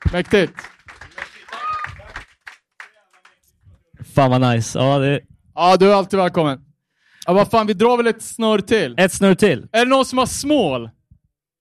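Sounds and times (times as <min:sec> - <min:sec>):
cheering: 0:00.0 - 0:03.4
clapping: 0:00.0 - 0:03.5
speech: 0:00.1 - 0:00.8, 0:04.2 - 0:11.0
excited voices: 0:01.1 - 0:02.2.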